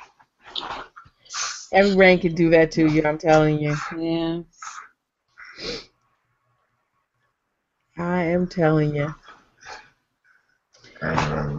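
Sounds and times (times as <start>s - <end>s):
speech: 1.7s - 4.5s, 8.3s - 9.2s, 11.0s - 11.5s
dog growling playfully: 11.0s - 11.5s.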